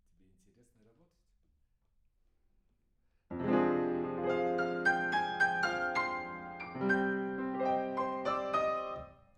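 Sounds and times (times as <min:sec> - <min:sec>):
piano: 0:03.3 - 0:09.3.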